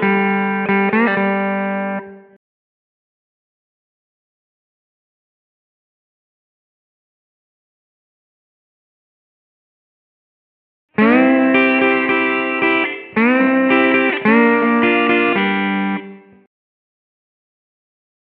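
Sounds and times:
slide guitar in G at 110 BPM: 0:00.0 - 0:02.2, 0:11.0 - 0:16.4.

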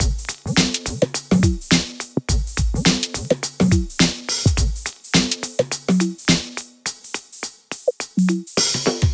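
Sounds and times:
drum loops: 0:00.0 - 0:09.1.

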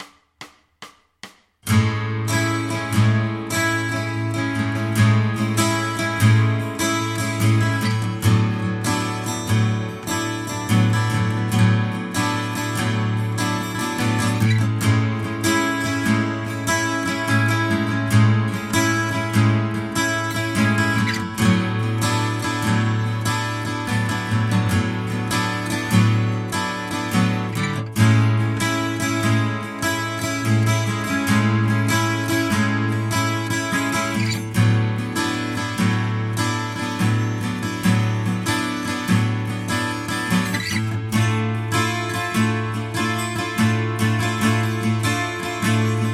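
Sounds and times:
short guitar improvisation: 0:00.0 - 0:46.1.

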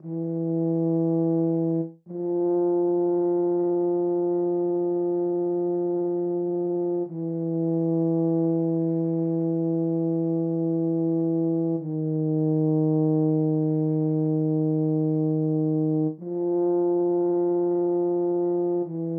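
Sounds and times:
tuba: 0:00.0 - 0:19.1.

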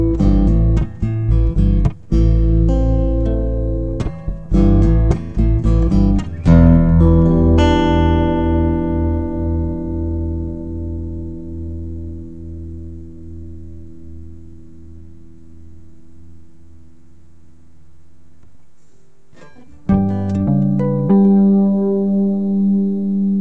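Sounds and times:
blues duet: 0:00.0 - 0:14.4, 0:19.3 - 0:23.3.

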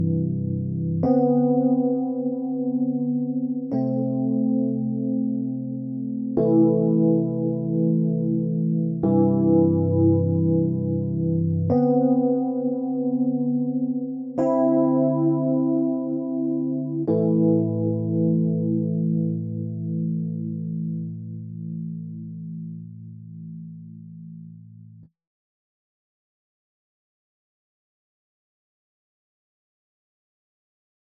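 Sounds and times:
dry E minor 9 piano chord: 0:00.0 - 0:22.6.

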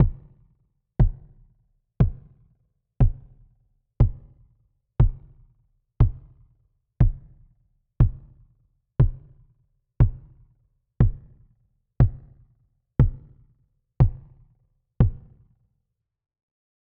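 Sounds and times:
kick drum: 0:00.0 - 0:15.6.

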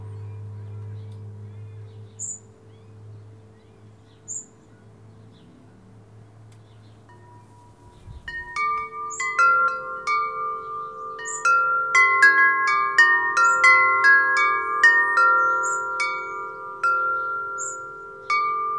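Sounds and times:
local traffic: 0:00.0 - 0:18.7
wind chimes: 0:07.0 - 0:18.7.

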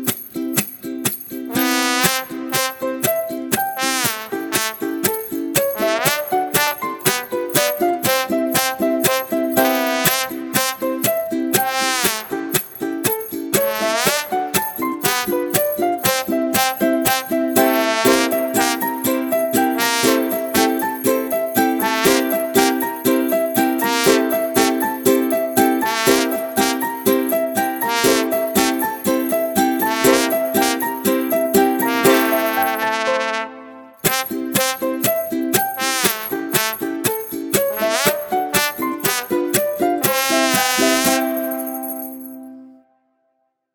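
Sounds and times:
ukulele playing happily: 0:00.0 - 0:42.9.

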